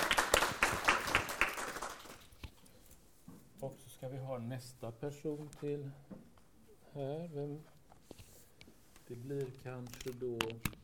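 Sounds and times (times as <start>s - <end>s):
audience applause for a presentation: 0.0s - 2.2s
speech: 4.1s - 6.3s, 6.9s - 7.8s, 9.1s - 10.8s.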